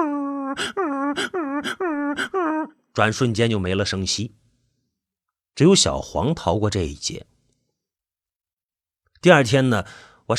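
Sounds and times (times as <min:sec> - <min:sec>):
dogs yelping in pain: 0:00.0 - 0:02.8
speech: 0:00.6 - 0:04.4, 0:05.6 - 0:07.3, 0:09.2 - 0:10.3.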